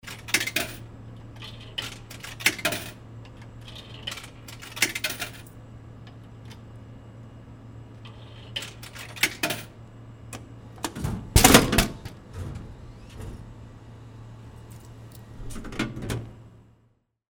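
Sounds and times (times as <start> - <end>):
soft drink vending machine: 0.0 - 16.9.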